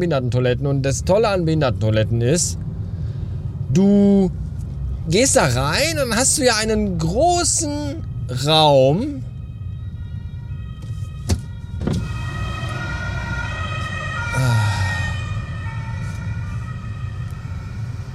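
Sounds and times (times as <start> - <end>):
speech: 0.0 - 2.7, 3.7 - 9.3
low traffic rumble: 0.0 - 18.1
emergency vehicle siren: 4.8 - 18.1.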